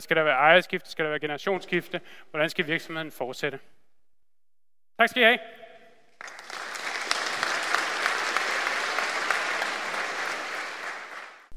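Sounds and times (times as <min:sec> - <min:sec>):
speech: 0:00.0 - 0:03.8, 0:05.0 - 0:05.6
audience applause after a lecture: 0:06.2 - 0:11.5.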